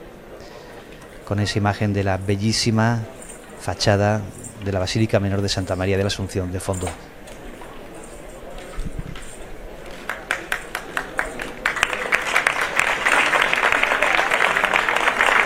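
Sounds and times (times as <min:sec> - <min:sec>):
murmur of voices: 0:00.0 - 0:15.4
speech: 0:01.3 - 0:07.1
street crowd applauding a procession: 0:09.8 - 0:15.4.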